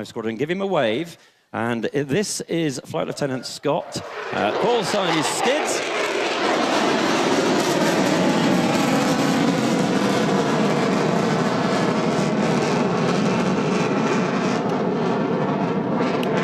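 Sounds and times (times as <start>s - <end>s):
speech: 0.0s - 5.9s
military jet on afterburner during an airshow manoeuvre: 3.0s - 16.4s.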